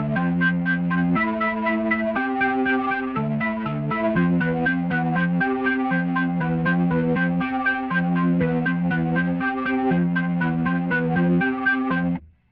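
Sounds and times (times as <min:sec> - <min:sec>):
Hammond B3 organ: 0:00.0 - 0:12.2.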